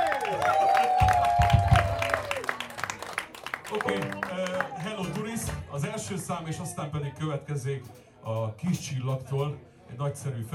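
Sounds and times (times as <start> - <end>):
audience applause: 0.0 - 5.7
speech: 6.1 - 10.5.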